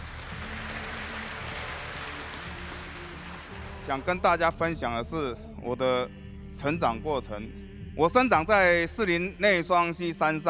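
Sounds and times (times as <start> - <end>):
audience applause: 0.0 - 4.1
speech: 3.9 - 10.4.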